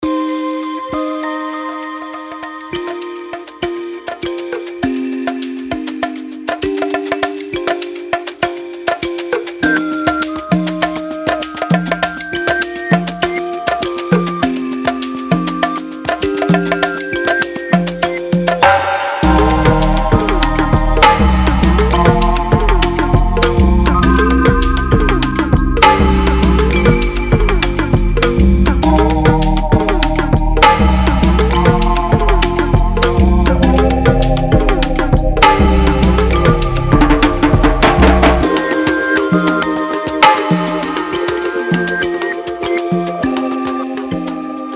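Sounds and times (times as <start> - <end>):
Afro percussion: 0.0 - 44.7.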